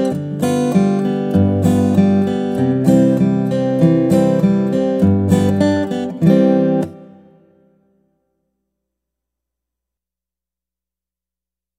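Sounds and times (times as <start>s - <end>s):
guitar: 0.0s - 8.8s.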